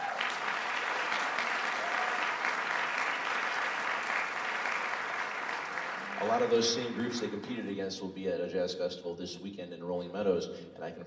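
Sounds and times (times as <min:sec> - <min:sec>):
audience applause for student jazz combo: 0:00.0 - 0:07.7
speech: 0:06.2 - 0:11.0.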